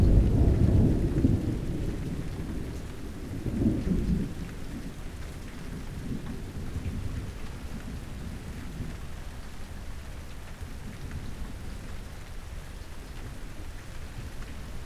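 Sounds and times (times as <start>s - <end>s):
thunder: 0.0s - 4.5s.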